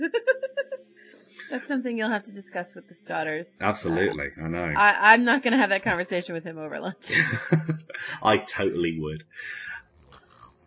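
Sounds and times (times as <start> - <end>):
laughter: 0.0 - 1.6, 3.6 - 4.5, 7.1 - 9.8
speech: 1.5 - 9.7
person imitating exaggerated snoring: 9.4 - 10.6.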